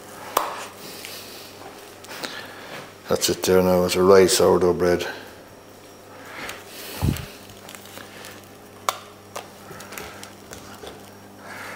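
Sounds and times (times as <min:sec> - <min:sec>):
speech: 0:03.1 - 0:05.2
paper crackling: 0:06.3 - 0:11.2.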